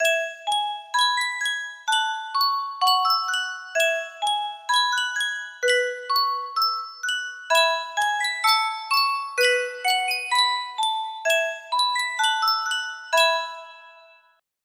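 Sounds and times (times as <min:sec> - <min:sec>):
Sankyo music box melody: 0:00.0 - 0:14.4.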